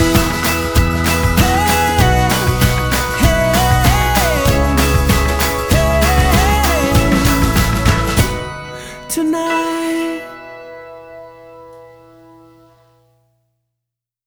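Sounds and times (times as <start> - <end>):
music without guitar: 0.0 - 13.1.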